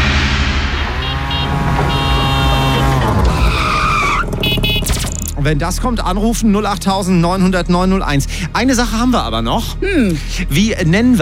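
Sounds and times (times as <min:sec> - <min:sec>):
tuk-tuk auto rickshaw engine droning: 0:00.0 - 0:05.5
speech: 0:05.5 - 0:11.2.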